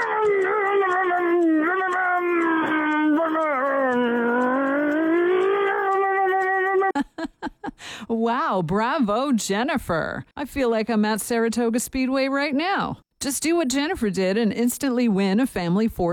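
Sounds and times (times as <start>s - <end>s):
person vocally imitating a revving car engine: 0.2s - 6.9s
speech: 8.1s - 16.1s.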